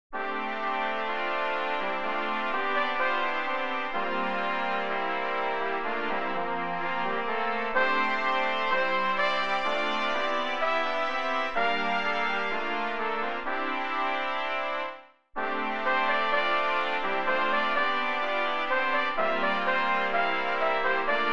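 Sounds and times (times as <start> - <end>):
fanfare: 0.2 - 21.3.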